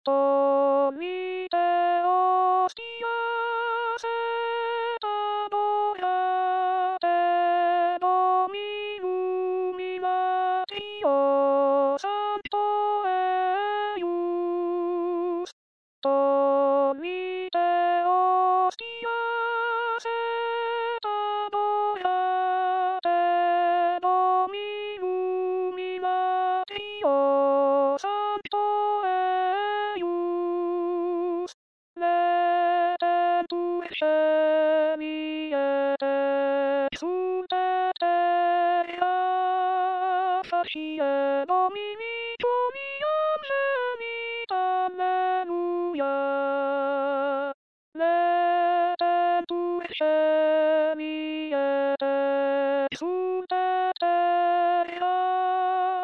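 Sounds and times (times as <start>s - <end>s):
alto singing: 0.1s - 56.0s.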